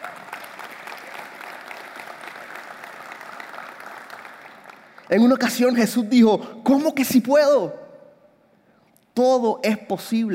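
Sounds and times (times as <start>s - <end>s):
crowd applause: 0.0s - 5.1s
speech: 5.1s - 7.8s, 9.2s - 10.3s.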